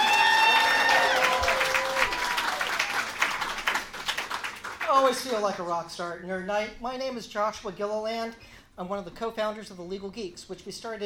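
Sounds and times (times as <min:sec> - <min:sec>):
audience applause: 0:00.0 - 0:05.1
speech: 0:05.1 - 0:11.0.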